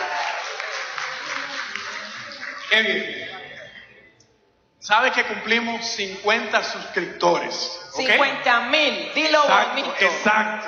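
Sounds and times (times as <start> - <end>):
audience clapping for a pastor and his wife at a church gathering: 0.0 - 3.0
speech: 2.7 - 3.3, 4.8 - 10.6.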